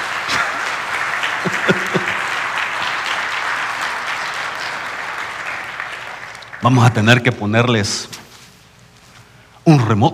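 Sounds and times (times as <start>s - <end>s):
audience applause: 0.0s - 7.2s
laughter: 1.2s - 2.7s
speech: 6.6s - 8.1s, 9.6s - 10.1s.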